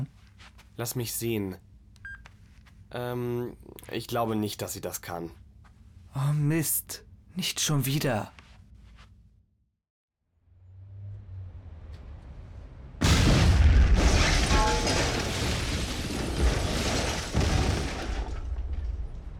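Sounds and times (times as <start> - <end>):
speech: 0.8 - 1.7, 2.9 - 5.4, 6.1 - 8.4
explosion blowing out office building facade: 12.3 - 19.3.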